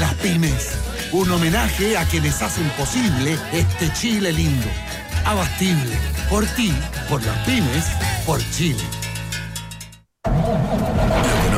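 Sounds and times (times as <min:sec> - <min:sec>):
speech: 0:00.2 - 0:09.0
diesel truck engine starting: 0:10.3 - 0:11.5.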